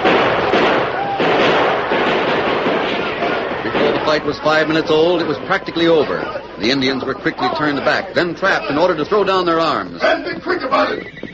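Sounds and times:
gunfire from the train: 0.0 - 6.2
speech: 4.2 - 11.3.

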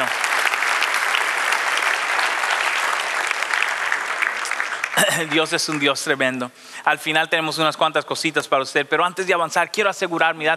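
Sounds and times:
audience clapping: 0.0 - 6.3
speech: 5.2 - 10.5.

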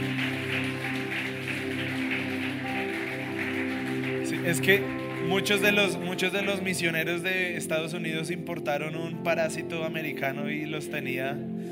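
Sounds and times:
audience applause: 0.0 - 6.8
speech: 4.4 - 11.6.

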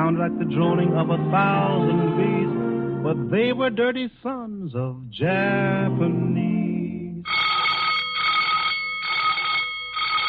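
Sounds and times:
speech: 0.1 - 6.5
alarm bell ringing: 7.3 - 10.2.

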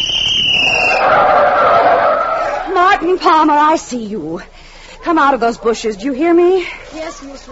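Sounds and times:
police-style whistle blast: 0.0 - 3.3
speech: 3.0 - 7.4.

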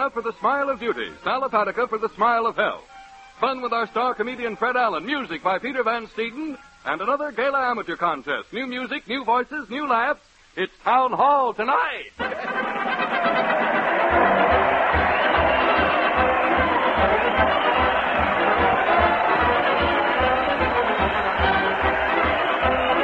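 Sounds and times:
speech: 0.0 - 13.4
crowd cheering: 12.2 - 23.0.

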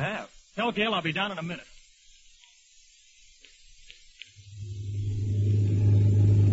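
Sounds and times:
speech: 0.0 - 1.7
car driving up and stopping: 4.6 - 6.5.

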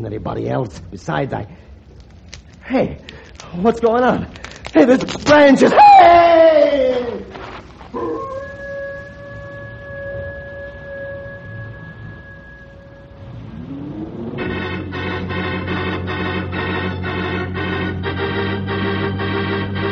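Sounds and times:
speech: 0.0 - 1.7, 2.7 - 7.0
wolf howling: 5.7 - 14.3
rising wail: 5.7 - 18.8
dense buzzing drone: 8.0 - 19.9.

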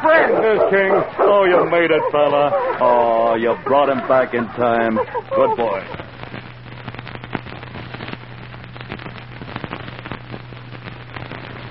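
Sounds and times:
speech: 0.0 - 6.0
crackling driftwood fire: 0.0 - 11.6
laughter: 0.1 - 6.1.

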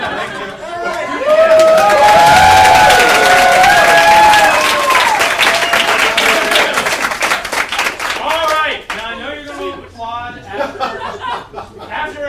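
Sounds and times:
laughter: 0.0 - 1.7, 9.1 - 12.2
audience applause: 0.0 - 9.1
people cheering: 0.0 - 9.7.

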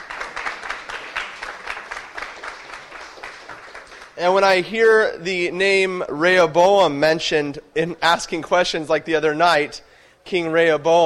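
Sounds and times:
audience applause: 0.0 - 4.2
speech: 4.2 - 11.0.

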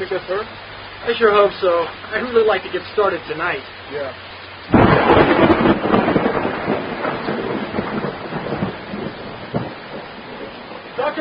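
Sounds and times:
speech: 0.0 - 4.2
heavy rain pouring: 0.0 - 11.1
deep roll of thunder rumbling: 4.7 - 11.1.

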